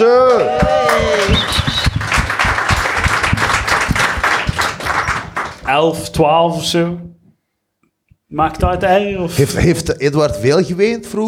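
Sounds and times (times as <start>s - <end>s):
audience applause: 0.0s - 5.7s
speech: 5.8s - 7.1s, 8.3s - 11.2s.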